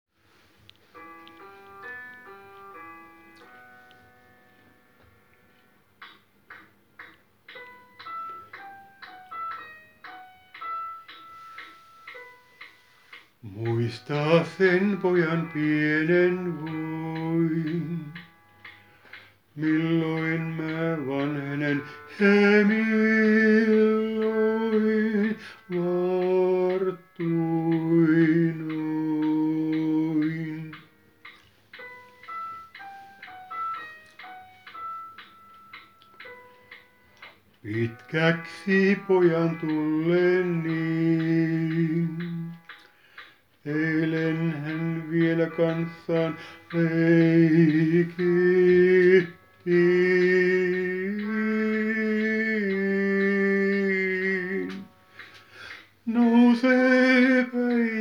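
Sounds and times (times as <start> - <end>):
tenor singing: 13.4 - 18.4, 19.5 - 31.1, 37.6 - 42.8, 43.6 - 55.0, 56.0 - 58.0.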